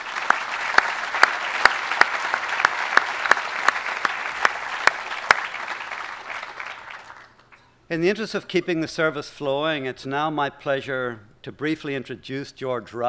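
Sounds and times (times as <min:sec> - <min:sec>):
round of applause: 0:00.0 - 0:07.6
speech: 0:07.9 - 0:13.0.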